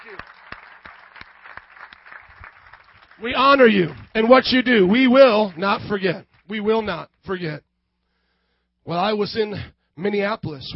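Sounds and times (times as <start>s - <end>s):
crowd applauding: 0.0s - 7.4s
speech: 3.2s - 7.7s, 8.8s - 10.7s.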